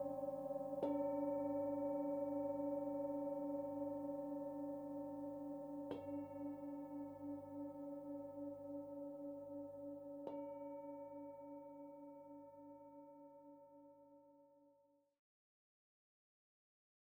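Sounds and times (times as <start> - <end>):
singing bowls: 0.0 - 13.7.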